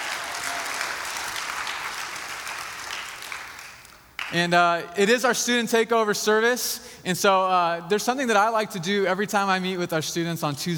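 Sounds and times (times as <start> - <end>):
large crowd applauding: 0.0 - 4.4
speech: 4.3 - 10.7.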